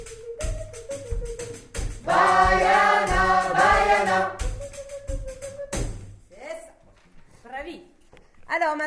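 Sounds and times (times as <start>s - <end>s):
chant: 2.1s - 4.4s.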